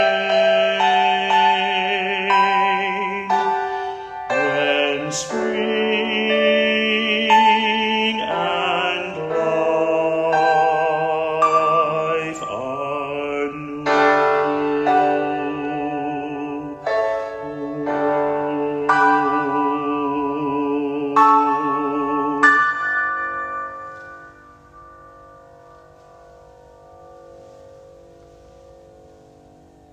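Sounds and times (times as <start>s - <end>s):
tenor singing: 0.0s - 23.0s.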